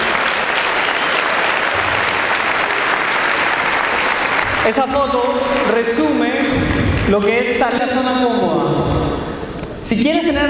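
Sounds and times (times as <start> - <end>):
audience applause: 0.0 - 7.3
speech: 4.7 - 10.4.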